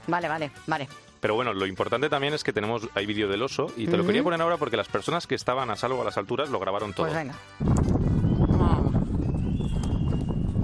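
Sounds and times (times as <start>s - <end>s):
speech: 0.1s - 8.0s
wind noise: 7.6s - 10.6s
people on a chairlift whistling: 8.2s - 10.6s.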